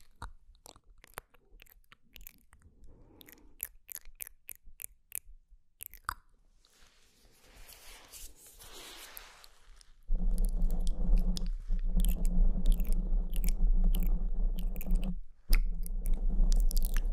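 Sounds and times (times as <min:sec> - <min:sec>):
ASMR mouth clicks and chewing-like crunches: 0:00.0 - 0:06.3, 0:09.2 - 0:17.1
loud low hum: 0:10.1 - 0:17.1.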